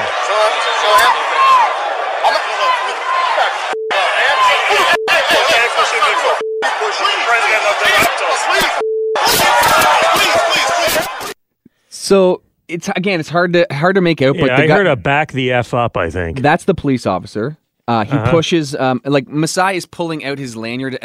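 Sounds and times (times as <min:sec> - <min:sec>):
arena crowd cheering: 0:00.0 - 0:11.4
speech: 0:00.4 - 0:01.2, 0:06.0 - 0:10.2, 0:12.0 - 0:21.0.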